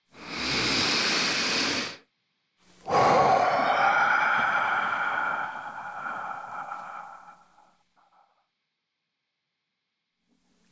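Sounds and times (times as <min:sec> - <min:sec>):
deep breath: 0:00.0 - 0:02.1, 0:02.7 - 0:08.3.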